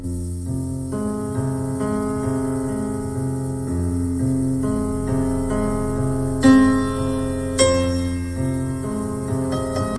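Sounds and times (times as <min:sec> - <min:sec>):
piano: 0:00.0 - 0:09.9.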